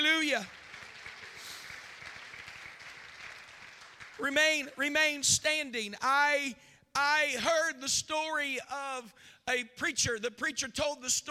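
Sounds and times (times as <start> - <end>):
people clapping: 0.0 - 5.1
speech: 0.2 - 0.6, 4.2 - 11.2.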